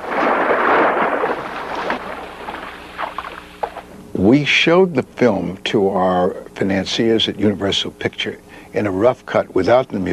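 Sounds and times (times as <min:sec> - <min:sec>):
foley effect of shark emerging from water: 0:00.0 - 0:03.8
speech: 0:04.3 - 0:10.1.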